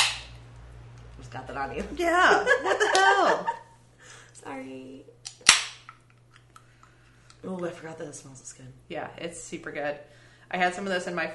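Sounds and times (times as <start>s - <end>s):
speech: 1.2s - 3.6s, 4.4s - 5.2s, 7.4s - 11.3s
laughter: 2.1s - 3.8s
beer can cracking open with fizzing hiss: 5.3s - 6.0s.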